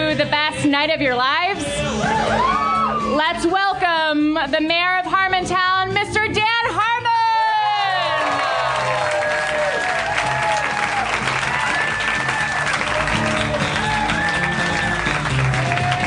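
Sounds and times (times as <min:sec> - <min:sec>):
speech: 0:00.2 - 0:06.9
large live audience applauding and cheering: 0:07.6 - 0:16.0.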